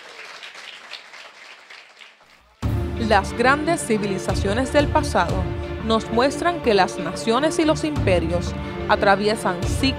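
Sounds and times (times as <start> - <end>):
audience applause: 0.0 - 2.6
speech: 3.0 - 9.9.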